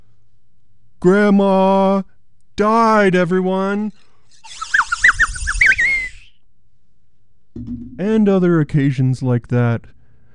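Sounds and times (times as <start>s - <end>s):
speech: 1.0s - 4.6s, 7.6s - 10.0s
slide whistle: 3.9s - 6.4s.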